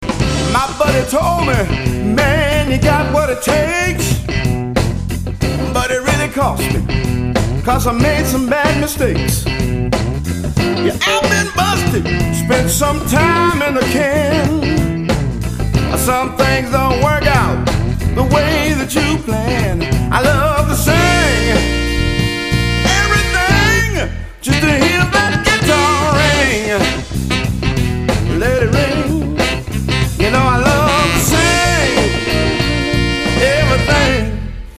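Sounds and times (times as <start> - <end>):
guitar playing: 0.0 - 34.7.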